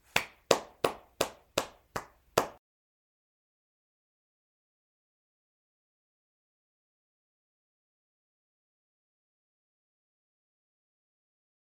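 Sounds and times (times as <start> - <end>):
single person clapping hands: 0.0 - 2.6.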